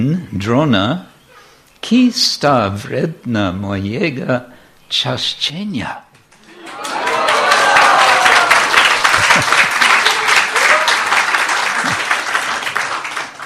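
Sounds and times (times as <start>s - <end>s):
speech: 0.0s - 1.1s, 1.8s - 6.0s
faint voices and whoops in an audience: 6.4s - 8.9s, 10.0s - 11.1s
sustained applause from a sizable audience: 6.4s - 13.4s.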